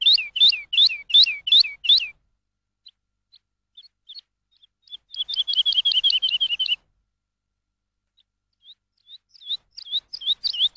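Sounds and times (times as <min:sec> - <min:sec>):
lark singing sharp bright whistled chirps: 0:00.0 - 0:02.2, 0:03.8 - 0:06.8, 0:08.6 - 0:10.7.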